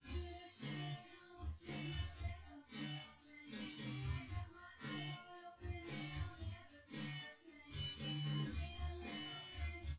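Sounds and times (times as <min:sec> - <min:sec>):
drums with synth convolution: 0:00.0 - 0:09.9.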